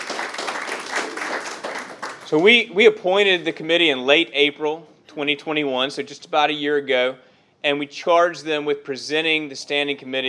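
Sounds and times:
audience clapping: 0:00.0 - 0:02.4
speech: 0:02.3 - 0:10.2.

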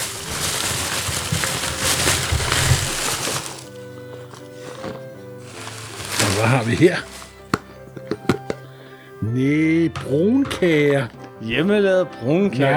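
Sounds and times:
gift wrapping paper rustling while unwrapped: 0:00.0 - 0:07.5
speech: 0:06.4 - 0:07.1, 0:09.4 - 0:12.7.

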